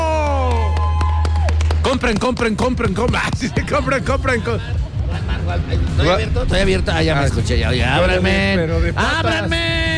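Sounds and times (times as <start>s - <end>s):
audience cheering: 0.0s - 2.1s
audience applause: 0.1s - 2.6s
speech: 2.0s - 9.8s.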